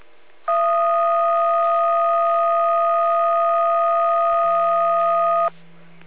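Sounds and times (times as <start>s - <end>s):
radio dispatch alarm tones: 0.5s - 5.5s.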